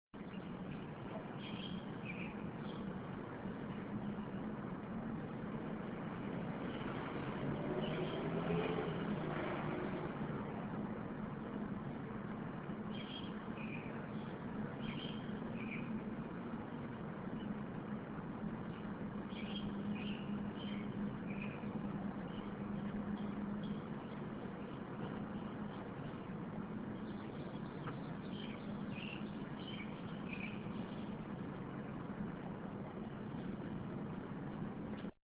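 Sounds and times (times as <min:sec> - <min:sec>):
birds: 0:00.2 - 0:35.1.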